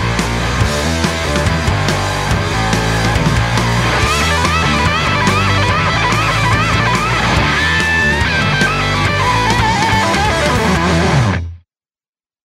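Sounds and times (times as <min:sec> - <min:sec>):
song: 0:01.0 - 0:11.5
pedals: 0:02.9 - 0:11.4.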